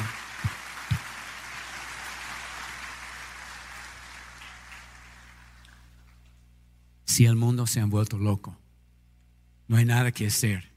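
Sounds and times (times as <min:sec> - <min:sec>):
audience applause: 0:00.0 - 0:06.0
speech: 0:07.2 - 0:08.6, 0:09.7 - 0:10.7.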